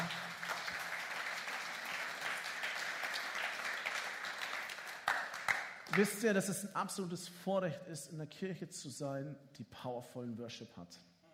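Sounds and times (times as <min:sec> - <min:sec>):
audience applause for the band: 0:00.0 - 0:06.0
speech: 0:05.9 - 0:11.1.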